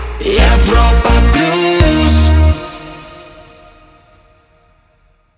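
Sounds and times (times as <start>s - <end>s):
jingle: 0.4s - 4.3s.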